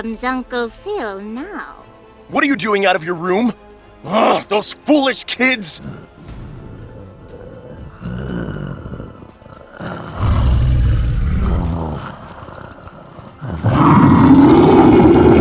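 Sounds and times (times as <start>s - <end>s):
speech: 0.0s - 6.1s
monster roar: 5.8s - 15.4s.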